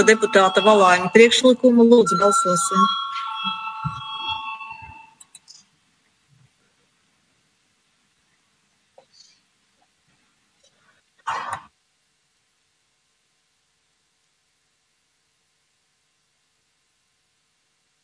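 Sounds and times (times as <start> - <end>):
speech: 0.0 - 3.6
parliament voting bell ringing: 0.0 - 5.2.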